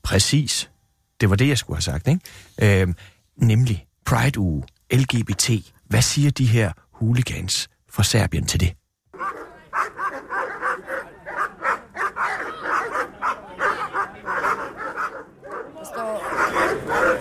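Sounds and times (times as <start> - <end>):
speech: 0.1 - 8.8
police dogs barking: 9.2 - 17.2.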